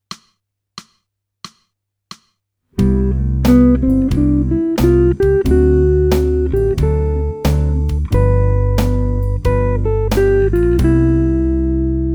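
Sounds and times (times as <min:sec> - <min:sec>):
jazz music: 0:02.8 - 0:12.0.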